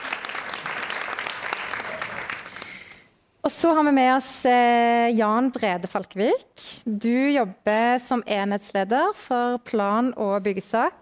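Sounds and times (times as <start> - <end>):
audience applause: 0.0 - 2.9
speech: 3.4 - 11.0.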